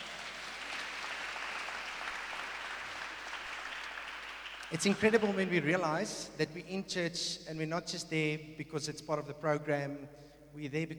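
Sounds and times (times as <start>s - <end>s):
church audience applauding new members: 0.0s - 6.3s
speech: 4.7s - 10.9s.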